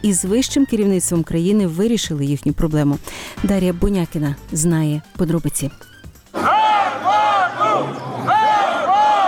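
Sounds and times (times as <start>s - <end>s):
speech: 0.0s - 6.5s
protesters shouting outside administration building: 6.4s - 9.2s.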